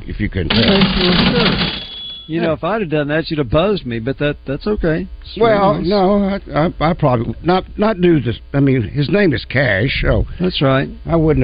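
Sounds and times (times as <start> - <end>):
speech: 0.2 - 11.4
cash register rattling: 0.5 - 2.4.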